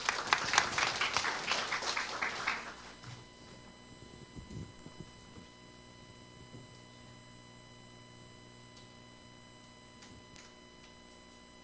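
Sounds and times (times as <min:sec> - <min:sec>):
audience clapping: 0:00.0 - 0:03.2.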